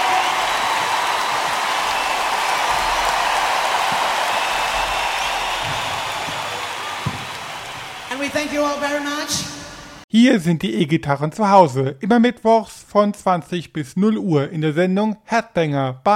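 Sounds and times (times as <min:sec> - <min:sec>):
audience applause: 0:00.0 - 0:08.8
speech: 0:08.4 - 0:16.1.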